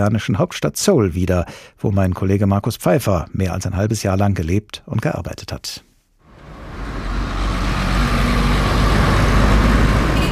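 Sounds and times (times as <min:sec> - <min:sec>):
speech: 0:00.0 - 0:05.9
dense road traffic rumbling: 0:06.3 - 0:10.3.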